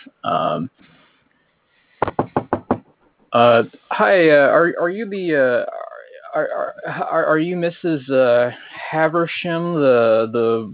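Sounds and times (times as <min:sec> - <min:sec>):
speech: 0:00.3 - 0:00.8, 0:03.3 - 0:10.7
knocking on the door of a forest ranger's house: 0:02.0 - 0:03.0.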